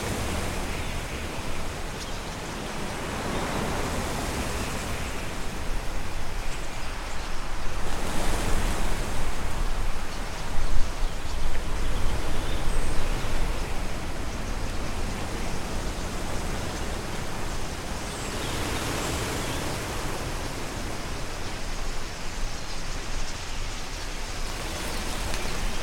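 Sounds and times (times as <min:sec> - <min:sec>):
flock of 10000 starlings: 0:00.0 - 0:25.8.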